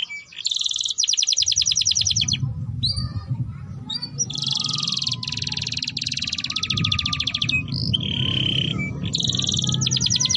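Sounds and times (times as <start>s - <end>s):
domestic canary singing: 0.0s - 10.3s
low hum: 2.0s - 10.3s.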